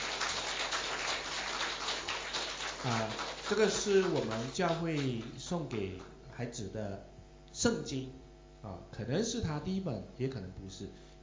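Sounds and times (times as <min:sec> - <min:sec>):
audience applause: 0:00.0 - 0:05.3
speech: 0:02.8 - 0:11.1.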